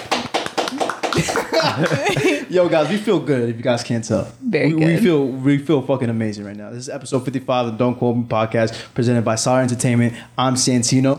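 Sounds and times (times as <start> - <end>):
hands clapping: 0.0 - 2.3
laughter: 1.0 - 3.1
speech: 1.2 - 11.1.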